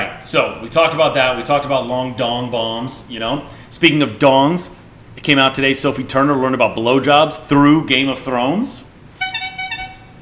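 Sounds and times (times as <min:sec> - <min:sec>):
speech: 0:00.2 - 0:08.9
mobile phone ringing: 0:09.2 - 0:10.2.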